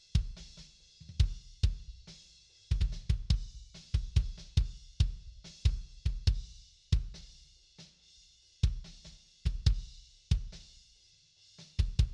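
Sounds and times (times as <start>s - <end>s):
kick drum: 1.2s - 2.1s, 2.7s - 7.2s, 8.6s - 10.6s, 11.8s - 12.1s.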